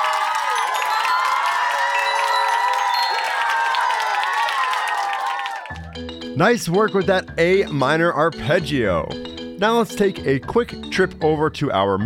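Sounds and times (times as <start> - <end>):
excited high-pitched voices whooping: 0.0 - 5.9
crowd applauding: 0.0 - 6.1
speech: 6.0 - 12.0.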